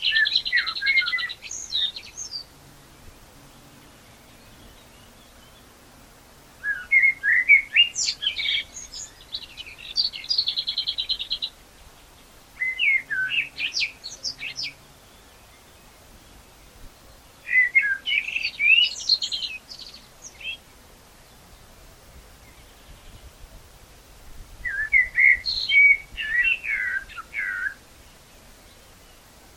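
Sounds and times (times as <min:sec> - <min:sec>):
common blackbird singing: 0:00.0 - 0:02.5, 0:03.5 - 0:05.7, 0:06.6 - 0:16.4, 0:17.0 - 0:20.6, 0:24.6 - 0:29.2.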